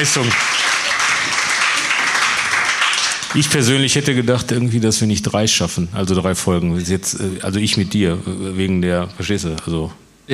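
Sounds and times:
speech: 0.0s - 0.8s, 3.3s - 10.3s
audience applause at a live podcast recording: 0.0s - 4.1s.

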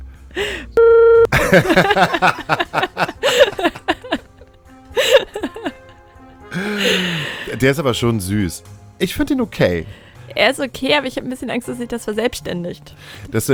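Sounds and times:
censor beep over a spoken name: 0.8s - 1.3s
laughter: 1.3s - 7.7s
speech: 1.5s - 3.8s, 6.6s - 13.5s.

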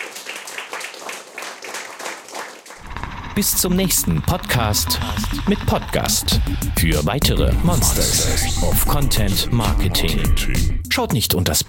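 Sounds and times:
audience applause: 0.0s - 3.3s
speech: 3.4s - 11.6s.

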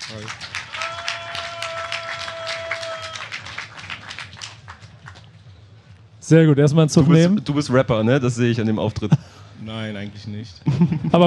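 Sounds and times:
applause: 0.0s - 5.3s
speech: 0.1s - 0.5s, 6.3s - 11.2s.

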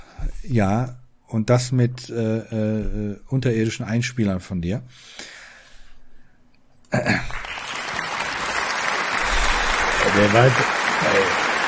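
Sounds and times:
speech: 0.5s - 5.4s, 6.9s - 7.4s, 10.2s - 11.4s
slow applause: 7.0s - 11.6s.

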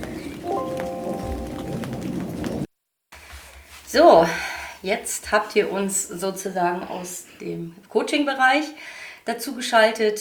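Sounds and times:
rain falling outside: 0.0s - 2.7s
speech: 3.9s - 10.1s.

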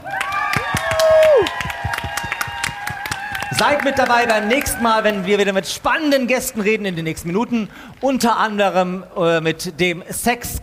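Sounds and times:
live audience cheering and applauding: 0.0s - 7.3s
speech: 3.6s - 10.6s.

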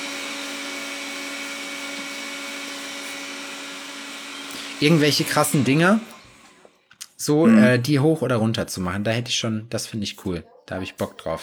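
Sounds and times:
vacuum cleaner running: 0.0s - 6.8s
speech: 4.6s - 6.1s, 7.2s - 11.4s.

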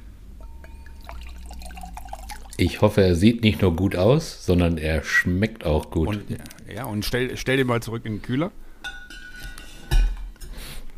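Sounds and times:
rosé wine being poured into a glass: 0.4s - 3.0s
speech: 2.6s - 8.6s.

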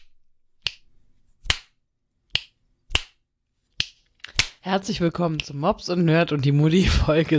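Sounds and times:
finger snapping: 0.6s - 3.2s
speech: 4.6s - 7.3s.

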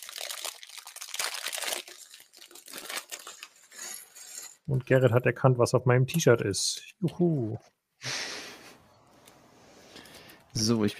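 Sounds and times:
crinkling while assembling LEGO Clone Trooper pieces: 0.0s - 4.7s
speech: 4.7s - 7.8s, 10.6s - 10.9s.

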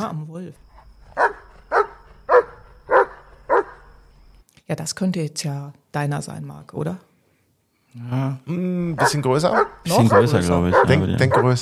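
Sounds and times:
speech: 0.0s - 1.4s, 4.7s - 7.1s, 7.9s - 11.6s
husky dog barking: 1.1s - 3.9s, 9.0s - 11.6s.

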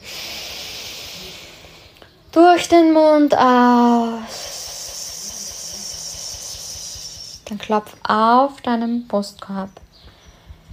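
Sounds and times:
deep inhale through the nose: 0.0s - 2.2s, 4.0s - 7.5s
speech: 2.4s - 4.4s, 7.5s - 9.8s.

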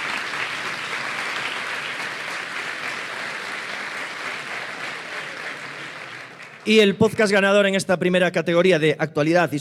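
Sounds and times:
applause for the nominees: 0.0s - 6.8s
speech: 6.6s - 9.5s.

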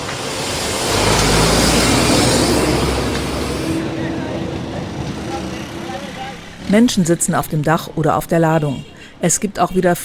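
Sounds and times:
garbage trucks loaded with rubbish driving past: 0.0s - 8.4s
speech: 6.7s - 10.0s.

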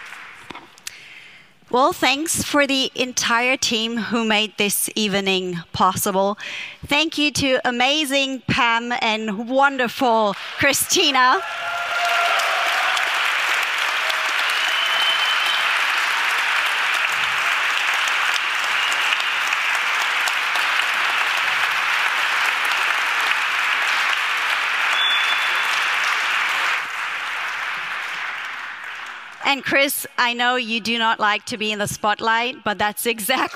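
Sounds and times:
audience applause: 0.0s - 0.8s, 11.3s - 29.4s
speech: 1.7s - 11.6s, 29.5s - 33.5s.

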